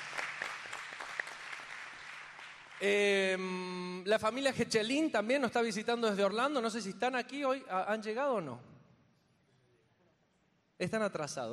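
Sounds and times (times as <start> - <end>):
applause: 0.0 - 3.2
speech: 2.8 - 8.7, 10.8 - 11.5.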